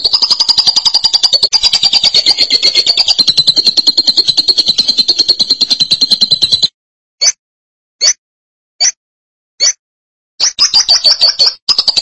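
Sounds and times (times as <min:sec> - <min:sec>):
lovebird trill and chirps: 0:00.0 - 0:06.7, 0:10.4 - 0:12.0.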